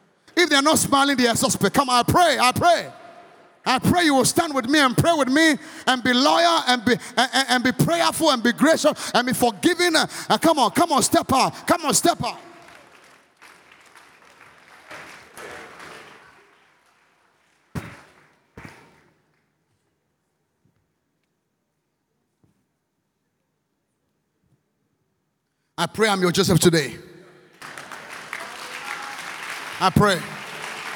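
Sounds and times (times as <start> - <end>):
man preaching: 0.3 - 12.8, 25.8 - 27.4, 29.8 - 30.5
speech: 0.5 - 3.0, 3.6 - 12.5, 25.8 - 27.1, 29.8 - 30.4
audience clapping: 11.3 - 18.5, 27.5 - 30.9.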